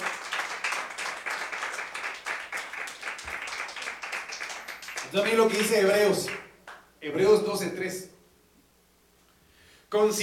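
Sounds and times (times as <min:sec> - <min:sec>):
audience clapping: 0:00.0 - 0:06.8
speech: 0:05.1 - 0:06.4, 0:07.0 - 0:08.1, 0:09.9 - 0:10.2.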